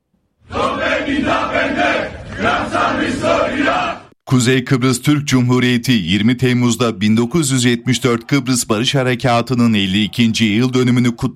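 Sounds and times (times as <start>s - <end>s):
fanatical group in southern Cyprus chanting anti-Turkey slogans: 0.4s - 4.1s
speech: 0.6s - 11.3s.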